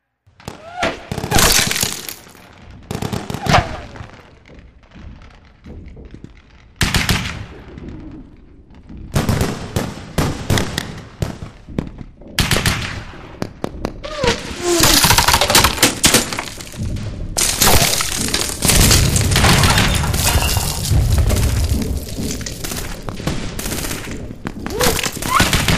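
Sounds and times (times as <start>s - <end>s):
modern war street battle in a city: 0.2s - 25.7s.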